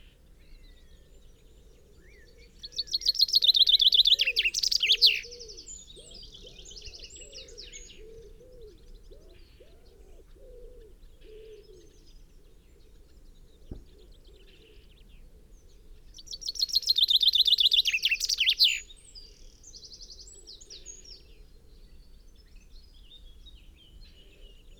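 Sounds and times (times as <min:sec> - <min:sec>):
common chaffinch (Fringilla coelebs) descending trilled song: 0:02.0 - 0:08.4, 0:16.0 - 0:21.3.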